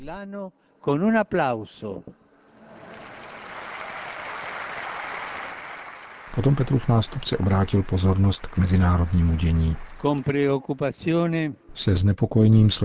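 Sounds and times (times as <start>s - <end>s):
speech: 0.0s - 2.2s, 6.4s - 12.8s
crowd applause: 2.5s - 10.4s.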